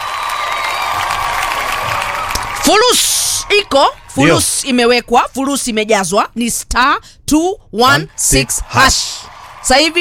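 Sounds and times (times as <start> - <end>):
crowd clapping for a winning contestant: 0.0 - 3.3, 8.4 - 10.0
crowd cheering for a winning contestant: 0.0 - 4.4, 7.9 - 10.0
speech: 2.7 - 10.0.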